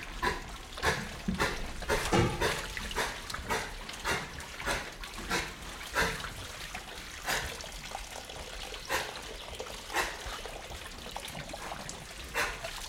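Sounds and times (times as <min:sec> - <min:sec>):
mud squelching and splashing: 0:00.0 - 0:12.8
pig grunting: 0:00.1 - 0:06.4, 0:08.9 - 0:10.4, 0:11.6 - 0:12.8.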